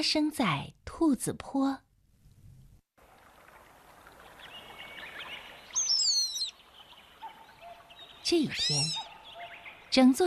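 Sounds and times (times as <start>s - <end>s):
speech: 0.0s - 1.8s, 8.2s - 9.0s, 9.9s - 10.2s
faint steady hiss: 2.1s - 8.6s
birds chirping on a hillside: 4.1s - 10.2s.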